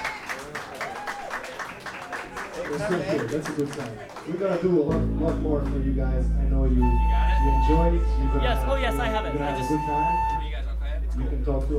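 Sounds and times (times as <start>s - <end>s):
bar audience clapping rhythmically for a live band: 0.0s - 6.1s
speech: 2.7s - 10.4s, 11.2s - 11.7s.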